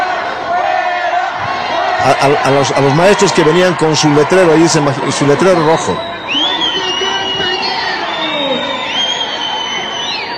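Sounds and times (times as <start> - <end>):
crowd shouting at protesters: 0.0 - 10.3
speech: 2.0 - 6.1.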